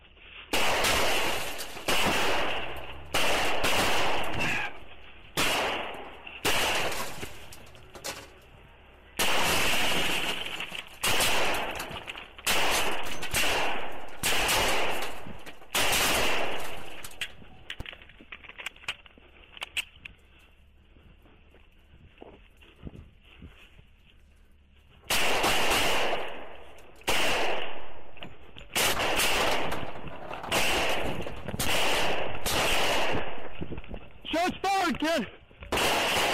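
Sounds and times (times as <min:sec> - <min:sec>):
gunfire: 0:00.5 - 0:07.5, 0:09.2 - 0:17.4, 0:25.1 - 0:33.8, 0:34.8 - 0:36.3.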